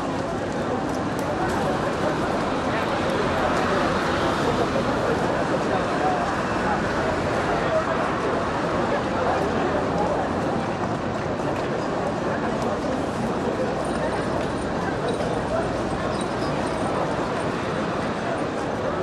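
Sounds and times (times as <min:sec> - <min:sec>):
city street ambience: 0:00.0 - 0:19.0.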